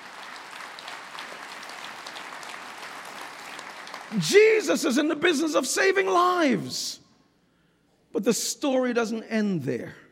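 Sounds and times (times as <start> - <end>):
sustained applause from a large audience: 0.0 - 4.4
speech: 4.1 - 7.0, 8.1 - 10.0.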